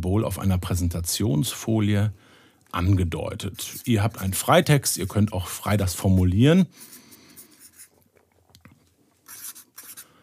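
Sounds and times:
speech: 0.0s - 7.0s
pens scratching on paper as quiz participants handwrite answers: 3.6s - 4.4s, 5.9s - 8.0s, 9.2s - 10.1s.

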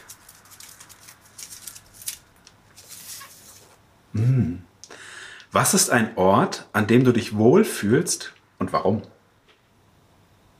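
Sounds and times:
paper rustling as a card is slid out of a paper envelope: 0.0s - 3.8s
speech: 4.2s - 4.7s, 5.5s - 9.2s.

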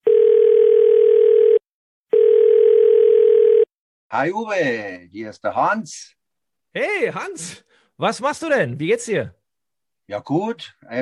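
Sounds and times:
steady loud single-pitched telephone tone of an incoming call: 0.0s - 3.7s
speech: 4.1s - 6.2s, 6.8s - 9.4s, 10.1s - 11.0s.

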